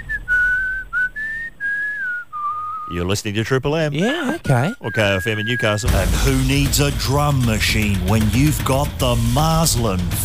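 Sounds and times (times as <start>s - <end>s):
man whistling imitating a pan flute: 0.0s - 2.9s, 4.8s - 5.8s
speech: 2.9s - 10.2s.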